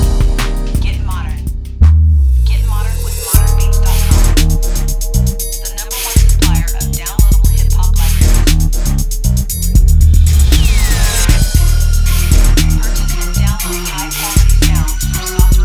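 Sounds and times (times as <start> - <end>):
bass guitar: 0.0 - 15.6.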